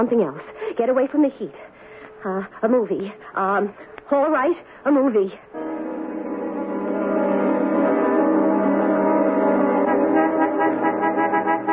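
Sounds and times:
speech: 0.0s - 5.7s
truck horn blast: 5.6s - 11.7s.

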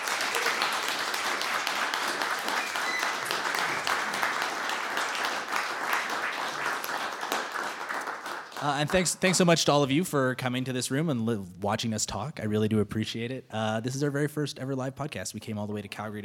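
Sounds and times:
crowd applauding steadily: 0.0s - 9.6s
speech: 8.6s - 16.2s.

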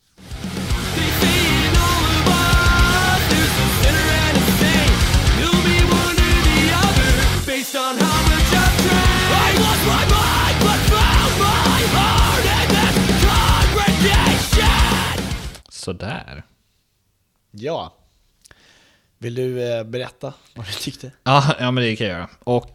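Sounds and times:
southern metalcore song: 0.2s - 15.6s
speech: 15.9s - 16.5s, 17.5s - 18.0s, 19.2s - 22.7s.

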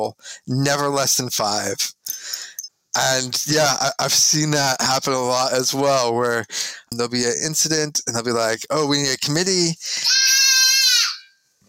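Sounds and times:
speech: 0.0s - 10.4s
young child yelling: 10.1s - 11.3s.

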